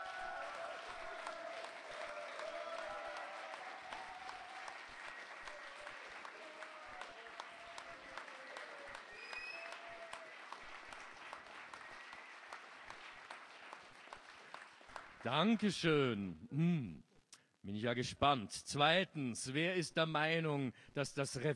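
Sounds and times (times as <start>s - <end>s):
audience applause: 0.0s - 15.6s
speech: 15.2s - 17.0s, 17.6s - 21.5s.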